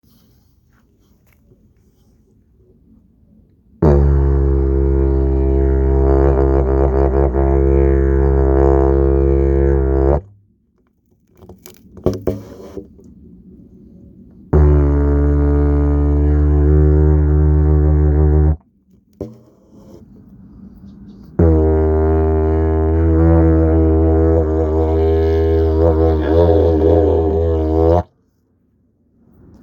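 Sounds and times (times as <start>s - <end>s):
telescopic didgeridoo slide: 3.8s - 10.3s, 14.5s - 18.6s, 21.2s - 28.1s.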